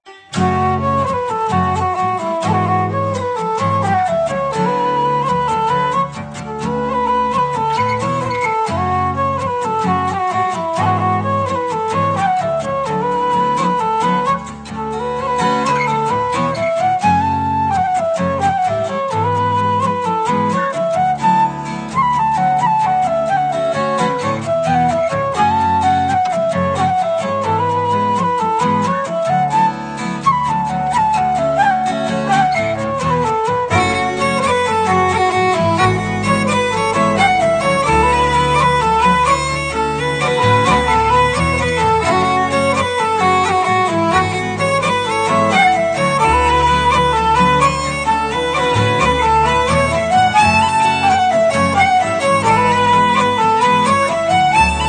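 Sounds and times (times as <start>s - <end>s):
slow slip jig tune: 0.1s - 54.8s.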